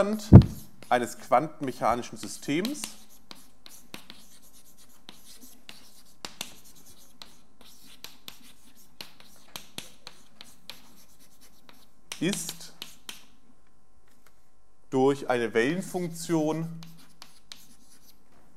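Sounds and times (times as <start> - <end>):
speech: 0.0 - 3.0, 12.2 - 12.6, 14.9 - 16.9
hand writing out a quantum-mechanics equation, scratchy strokes: 0.2 - 1.0, 2.2 - 13.2, 16.7 - 18.5
writing tool tapping on the surface: 0.3 - 0.6.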